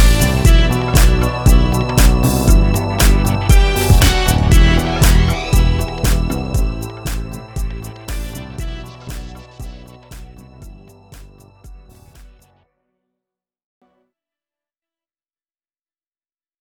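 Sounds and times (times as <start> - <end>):
chill dance music: 0.0 - 12.4.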